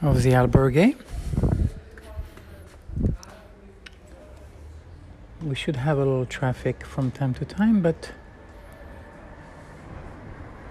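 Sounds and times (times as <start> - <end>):
speech: 0.0 - 1.5, 5.4 - 8.2
electric car passing by: 7.6 - 10.6.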